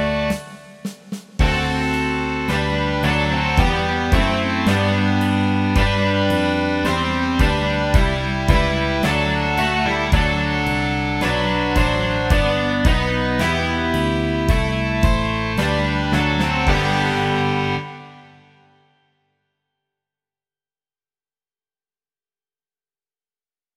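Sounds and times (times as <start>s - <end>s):
rock music: 0.0s - 18.7s.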